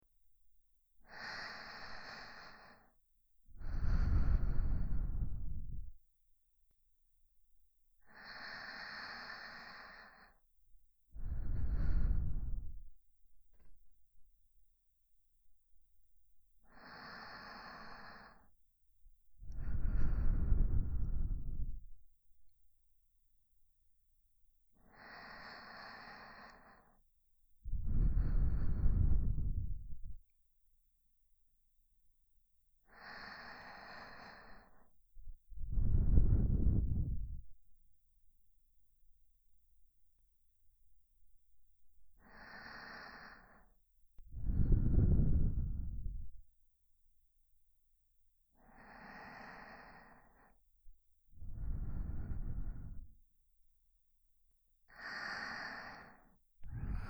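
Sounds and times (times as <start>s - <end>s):
sleeping breath loop on left channel: 1.0s - 6.0s, 8.0s - 10.4s, 11.2s - 13.0s, 16.6s - 18.5s, 19.4s - 22.0s, 24.8s - 27.0s, 27.7s - 30.3s, 32.8s - 37.6s, 42.2s - 46.4s, 48.6s - 50.6s, 51.4s - 53.2s, 54.9s - 57.0s.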